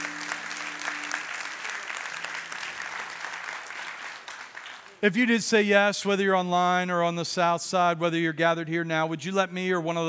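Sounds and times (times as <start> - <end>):
audience applauding: 0.0 - 5.0
speech: 5.0 - 10.0.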